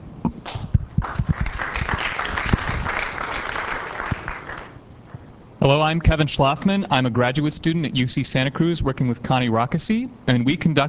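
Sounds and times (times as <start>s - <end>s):
audience clapping: 0.4s - 4.8s
speech: 5.6s - 10.8s.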